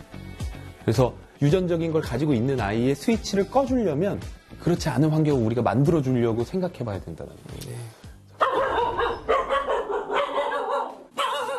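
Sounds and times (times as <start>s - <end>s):
speech: 0.8s - 8.0s
dogs barking: 8.4s - 11.5s.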